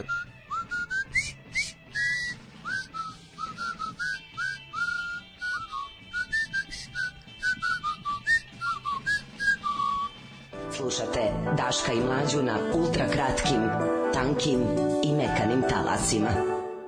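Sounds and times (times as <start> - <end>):
person whistling a brisk, jaunty march tune: 0.0 - 10.2
speech: 10.8 - 16.6.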